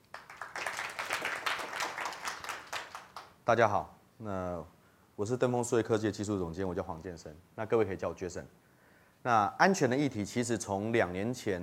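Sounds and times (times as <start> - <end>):
audience applause: 0.0 - 3.3
speech: 3.5 - 8.6, 9.2 - 11.6.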